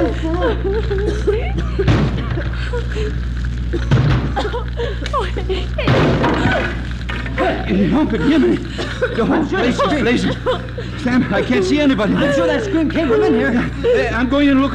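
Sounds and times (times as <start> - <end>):
laughter: 0.0 - 14.7
speech: 0.1 - 1.9, 2.6 - 6.8, 7.7 - 14.7
door being broken down: 1.8 - 2.6, 3.8 - 4.6, 5.8 - 7.7.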